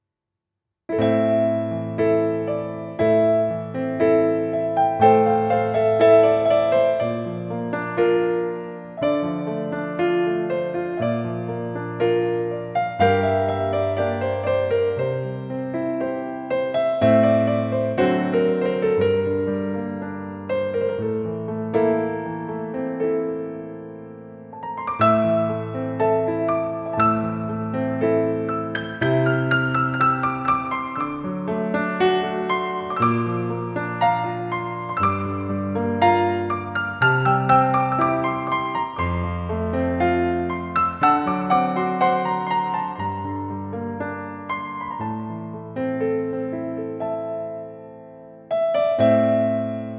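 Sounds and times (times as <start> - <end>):
piano: 0.9 - 49.9.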